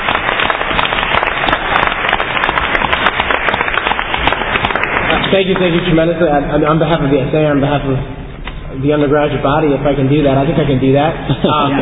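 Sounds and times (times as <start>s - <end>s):
audience applause at a major musical event at Cornell: 0.0s - 6.0s
speech: 5.3s - 11.8s.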